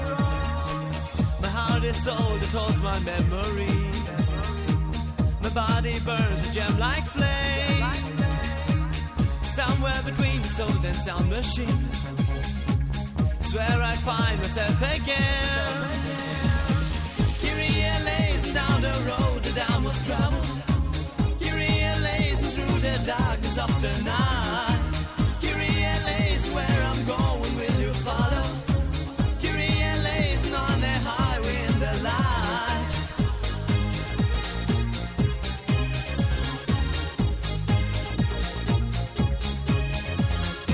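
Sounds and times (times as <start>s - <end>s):
dance music: 0.0s - 40.7s.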